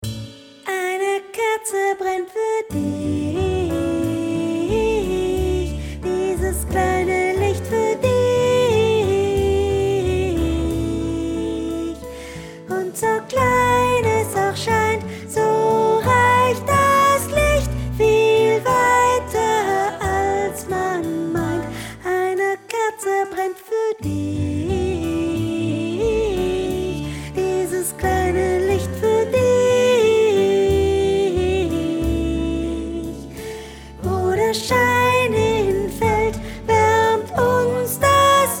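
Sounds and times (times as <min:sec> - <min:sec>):
soprano voice: 0:00.7 - 0:38.5.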